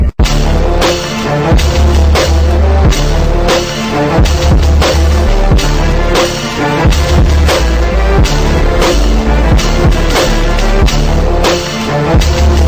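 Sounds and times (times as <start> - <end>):
saw synth anthem for krump dancing: 0.2 - 12.6.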